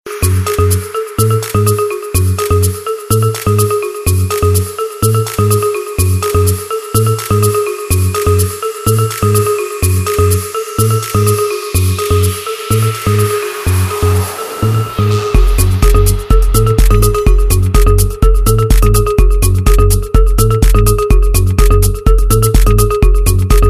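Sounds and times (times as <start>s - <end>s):
minimal music: 0.1s - 23.6s.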